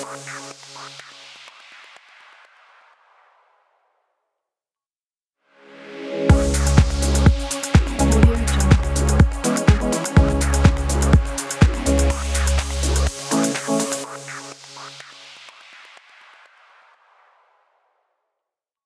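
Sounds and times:
house music logo stings: 0:06.3 - 0:14.4.

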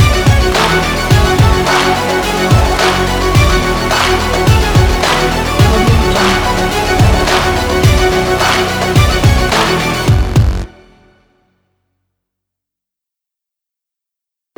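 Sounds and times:
sport intro music: 0:00.0 - 0:11.2.

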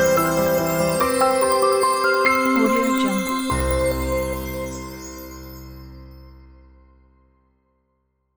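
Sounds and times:
hopeful background soundscape: 0:00.0 - 0:05.7.

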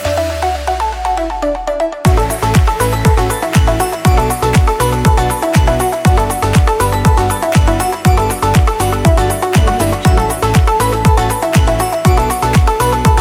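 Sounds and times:
summer upbeat pop music: 0:00.0 - 0:13.1.

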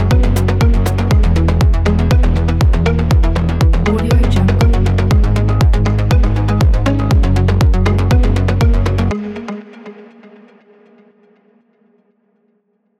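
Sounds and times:
energetic techno drum kit: 0:00.1 - 0:08.8.

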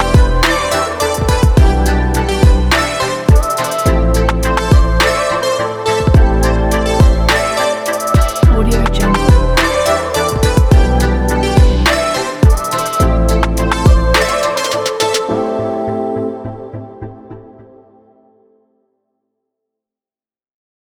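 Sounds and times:
street groove music: 0:00.0 - 0:15.3.

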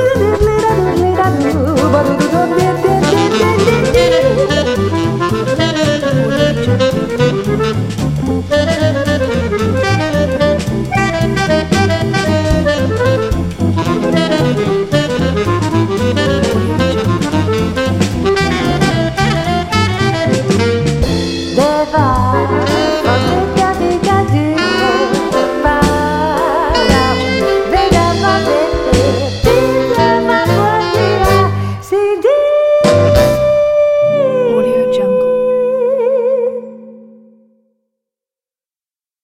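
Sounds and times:
person singing swing jazz vocal: 0:00.0 - 0:04.8, 0:21.6 - 0:37.0
swing jazz with saxophone: 0:00.0 - 0:37.0.

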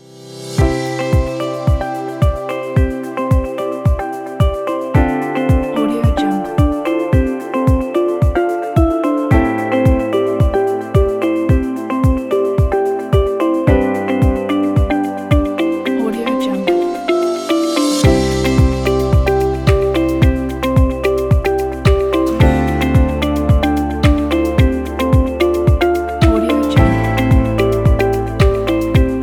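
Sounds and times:
spring commercial corporate music: 0:00.0 - 0:29.2.

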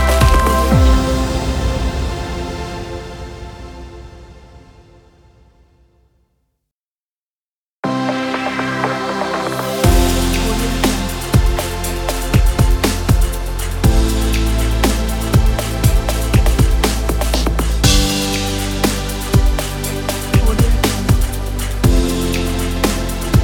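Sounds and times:
bright chill drum kit: 0:00.0 - 0:01.6, 0:08.1 - 0:23.4.

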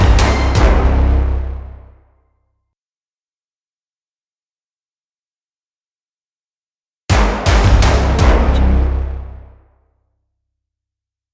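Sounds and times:
dramatic epic sport music: 0:00.0 - 0:01.9, 0:07.2 - 0:09.6.

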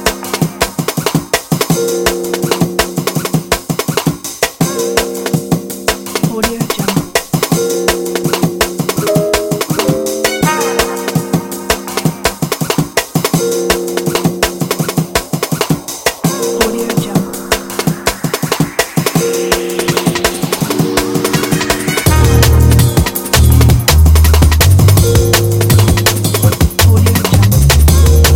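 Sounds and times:
jazzy drum and bass music: 0:00.0 - 0:28.3.

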